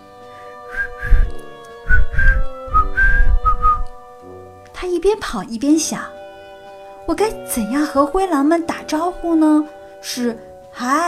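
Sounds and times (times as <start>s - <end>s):
person whistling a tune: 0.7s - 3.9s
speech: 4.8s - 6.2s, 7.1s - 11.0s.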